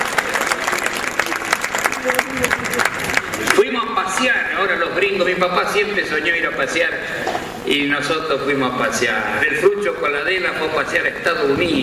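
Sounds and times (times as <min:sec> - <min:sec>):
crowd applauding: 0:00.0 - 0:04.7
speech: 0:02.0 - 0:11.8.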